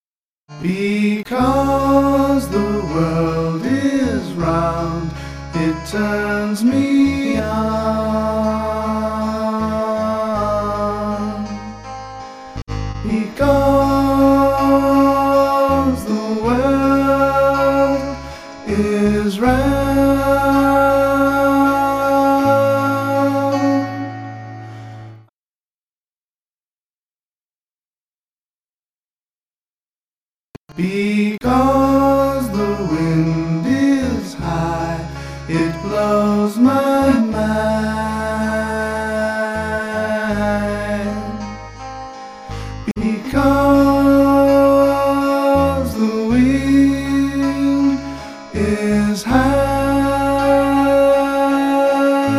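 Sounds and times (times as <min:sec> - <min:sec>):
bass: 0:00.5 - 0:25.3, 0:30.6 - 0:52.3.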